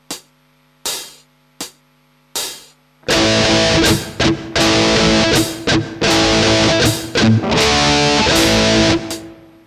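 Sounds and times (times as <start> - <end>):
palm-muted guitar: 3.0 - 9.6.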